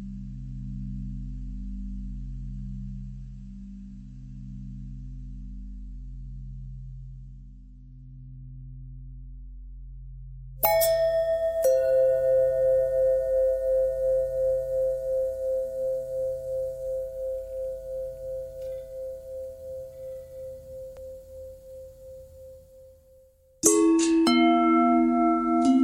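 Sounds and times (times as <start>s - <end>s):
long pentatonic bell tones: 10.6s - 25.8s.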